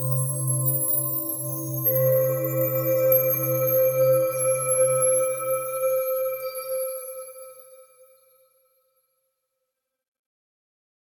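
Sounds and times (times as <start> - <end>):
crystal wind chime: 0.0 - 8.2.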